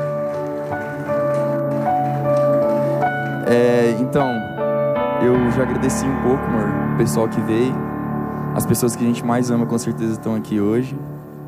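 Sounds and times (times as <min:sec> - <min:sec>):
round of applause: 0:00.0 - 0:03.0
speech: 0:03.5 - 0:04.5, 0:05.2 - 0:07.9, 0:08.6 - 0:11.2.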